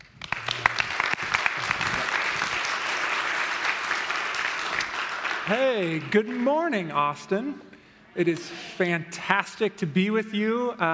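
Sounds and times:
church audience applauding a guest preacher: 0:00.0 - 0:06.9
speech: 0:05.5 - 0:10.9.

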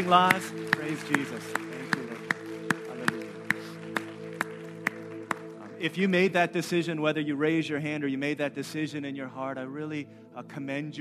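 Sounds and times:
speech: 0:00.0 - 0:02.0, 0:05.8 - 0:11.0
sharp claps: 0:00.0 - 0:05.9
held chord of sustained organ-like tones: 0:00.0 - 0:08.6.

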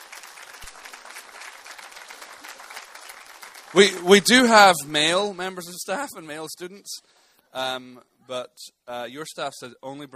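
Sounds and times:
audience applause: 0:00.0 - 0:04.8
speech: 0:03.7 - 0:10.1.

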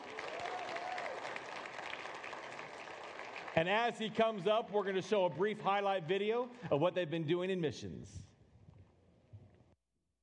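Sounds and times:
audience applause: 0:00.0 - 0:05.6
speech: 0:03.6 - 0:08.3.

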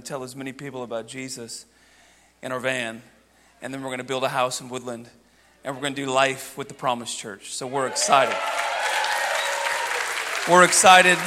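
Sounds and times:
speech: 0:00.1 - 0:08.6, 0:10.4 - 0:11.2
audience applause: 0:07.8 - 0:11.2.

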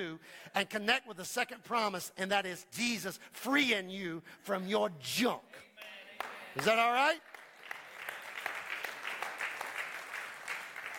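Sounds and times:
speech: 0:00.0 - 0:07.4
crowd applauding: 0:06.2 - 0:10.9.

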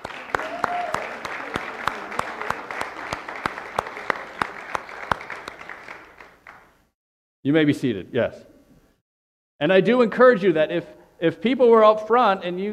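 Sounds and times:
audience clapping: 0:00.0 - 0:06.9
speech: 0:07.4 - 0:08.5, 0:09.6 - 0:12.7.

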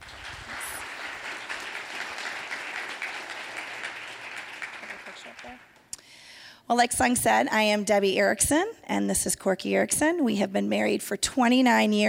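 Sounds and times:
audience applause welcoming a married couple invited up to speak: 0:00.0 - 0:05.8
speech: 0:05.4 - 0:05.8, 0:06.7 - 0:12.0.

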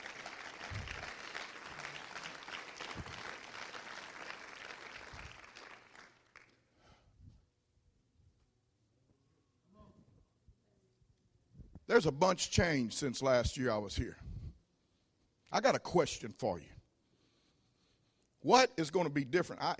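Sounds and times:
crowd clapping: 0:00.0 - 0:06.8
speech: 0:11.9 - 0:14.2, 0:15.6 - 0:16.8, 0:18.4 - 0:19.7.

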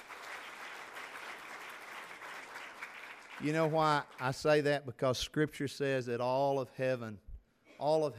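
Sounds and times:
audience applauding: 0:00.0 - 0:04.5
speech: 0:03.4 - 0:07.2, 0:07.8 - 0:08.1.

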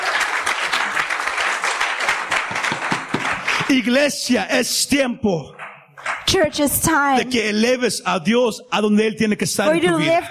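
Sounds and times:
audience applause: 0:00.0 - 0:04.2
speech: 0:03.7 - 0:05.6, 0:06.3 - 0:10.3.

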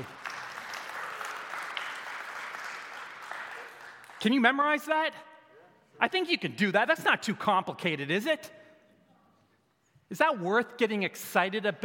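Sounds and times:
audience applause: 0:00.0 - 0:04.2
speech: 0:04.2 - 0:05.3, 0:06.0 - 0:08.6, 0:10.1 - 0:11.8.

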